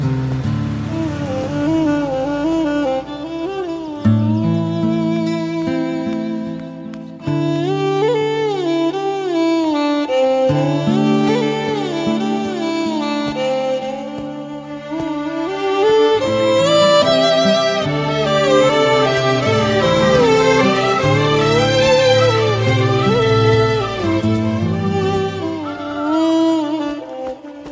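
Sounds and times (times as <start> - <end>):
sad Telugu background music: 0.1 - 27.1.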